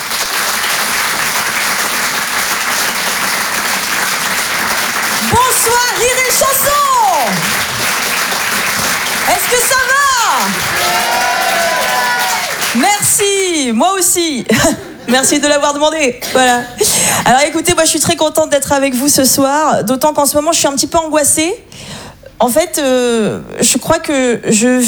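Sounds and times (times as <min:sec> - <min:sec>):
audience clapping to welcome a comedian onto the stage: 0:00.0 - 0:13.8
cheers and whoops: 0:09.3 - 0:13.0
speech: 0:12.8 - 0:21.8, 0:22.4 - 0:24.8.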